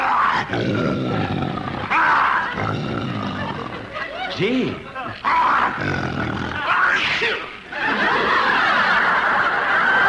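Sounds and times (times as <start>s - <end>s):
captive lion roaring: 0.0s - 3.9s, 5.3s - 6.7s
speech: 0.4s - 2.0s, 2.6s - 3.8s, 4.4s - 8.1s
laughter: 1.1s - 10.0s.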